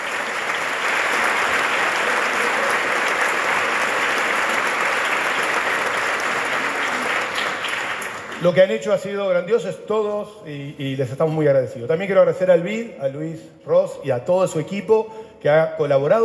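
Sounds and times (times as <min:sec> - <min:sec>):
audience applause: 0:00.0 - 0:08.7
speech: 0:08.4 - 0:16.2.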